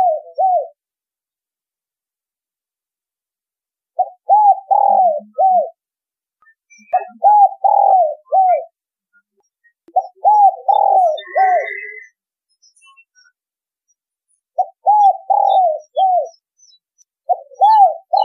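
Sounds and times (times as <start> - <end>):
spotted dove cooing: 0.0 - 0.8, 4.0 - 5.8, 6.9 - 8.7, 9.9 - 12.0, 14.6 - 16.4, 17.2 - 18.2.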